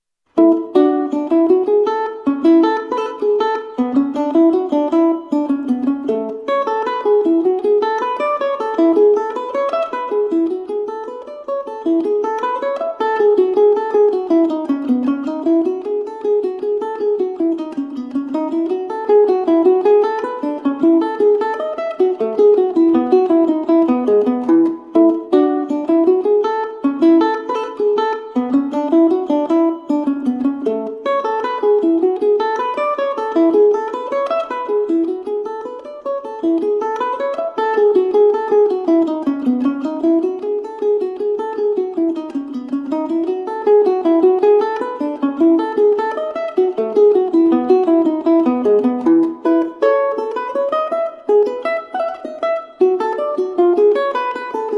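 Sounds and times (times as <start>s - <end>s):
solo mandola bourree: 0.4s - 54.7s.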